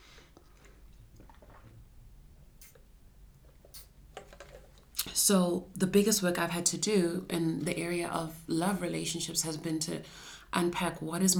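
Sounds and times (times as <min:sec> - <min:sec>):
person sipping water: 0:00.0 - 0:05.2
speech: 0:05.3 - 0:11.3.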